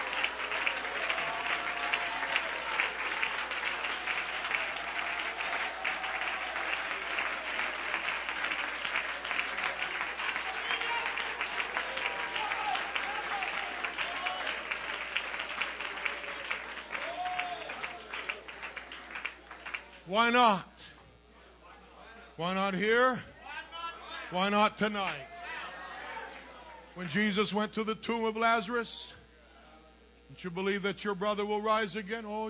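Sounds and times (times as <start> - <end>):
audience hand clap of praise: 0.0 - 20.1
speech: 20.1 - 20.7, 22.4 - 23.3, 24.3 - 25.3, 27.0 - 29.2, 30.4 - 32.4.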